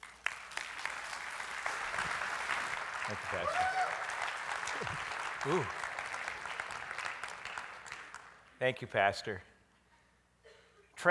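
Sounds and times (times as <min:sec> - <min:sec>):
audience applause welcoming a guest speaker: 0:00.0 - 0:08.6
speech: 0:03.1 - 0:04.1, 0:04.8 - 0:05.8, 0:08.6 - 0:09.5.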